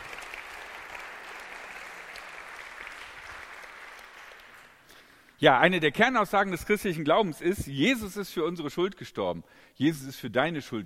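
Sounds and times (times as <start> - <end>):
applause: 0.0 - 5.3
speech: 5.4 - 10.8.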